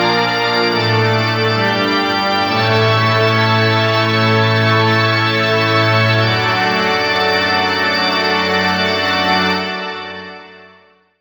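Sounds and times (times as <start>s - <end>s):
Memotron church organ: 0.0s - 11.0s.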